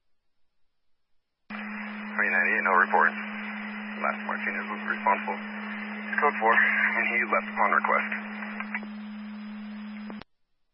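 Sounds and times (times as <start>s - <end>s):
radio dispatch alert tone: 1.5s - 10.2s
speech: 2.2s - 3.2s, 4.0s - 5.6s, 6.2s - 8.2s.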